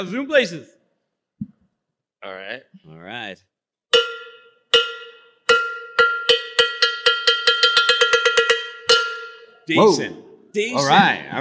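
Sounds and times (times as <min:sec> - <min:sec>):
speech: 0:00.0 - 0:00.8, 0:02.2 - 0:03.5, 0:09.7 - 0:11.3
cowbell being hit: 0:03.9 - 0:09.6.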